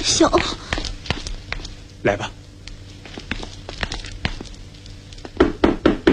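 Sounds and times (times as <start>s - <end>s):
speech: 0.1s - 0.7s, 2.0s - 2.4s
knocking on a door: 5.4s - 6.1s.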